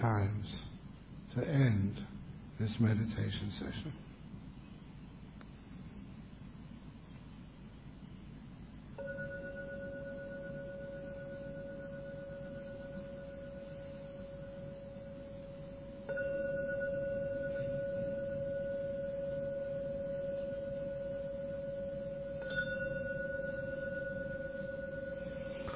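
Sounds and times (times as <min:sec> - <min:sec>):
speech: 0:00.0 - 0:00.7, 0:01.3 - 0:04.1
gong ringing: 0:09.0 - 0:25.7.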